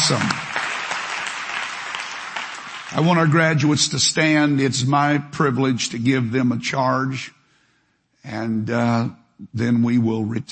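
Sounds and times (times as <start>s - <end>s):
audience applause: 0.0s - 3.5s
speech: 0.1s - 0.4s, 3.0s - 7.4s, 8.2s - 10.5s.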